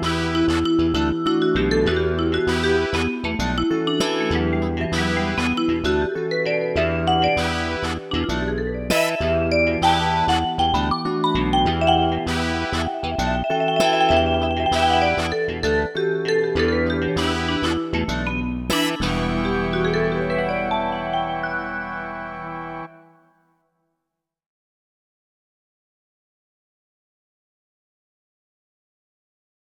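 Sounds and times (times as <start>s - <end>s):
rock funk music: 0.0s - 23.0s.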